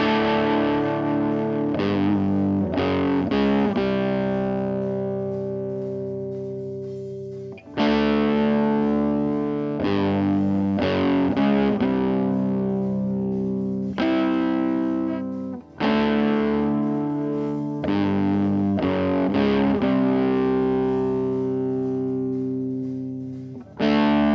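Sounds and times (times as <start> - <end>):
guitars: 0.0 - 24.3.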